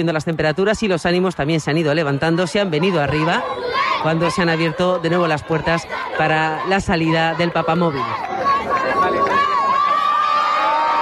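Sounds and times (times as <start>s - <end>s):
speech: 0.0s - 8.4s
crowd cheering and applauding: 3.3s - 11.0s.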